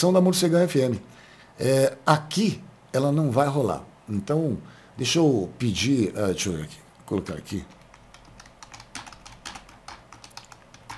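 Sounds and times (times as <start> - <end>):
speech: 0.0 - 7.8
typing on a computer keyboard: 7.7 - 10.9.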